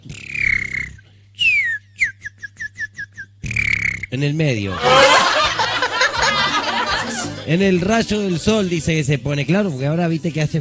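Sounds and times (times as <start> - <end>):
low hum: 0.0 - 10.5
person whistling bird imitation: 0.1 - 4.1
speech: 4.1 - 5.2, 7.5 - 10.5
laughter: 4.7 - 8.4.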